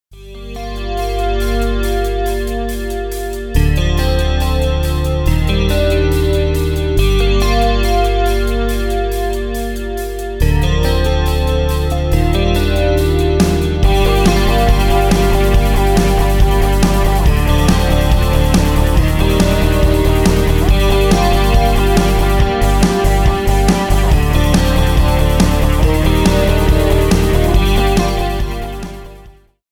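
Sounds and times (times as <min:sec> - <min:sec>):
140 bpm remix: 0:00.2 - 0:29.6.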